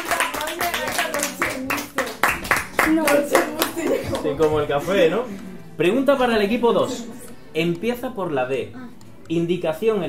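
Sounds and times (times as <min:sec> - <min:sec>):
scattered hand claps for a correct answer in a music quiz: 0:00.0 - 0:04.7
speech: 0:02.9 - 0:10.0.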